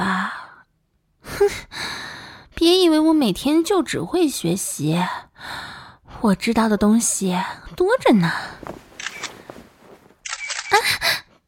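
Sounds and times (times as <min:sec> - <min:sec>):
speech: 0:01.4 - 0:02.0, 0:02.6 - 0:08.8
camera shutter clicks as a photo is taken: 0:09.0 - 0:09.4, 0:10.2 - 0:10.8.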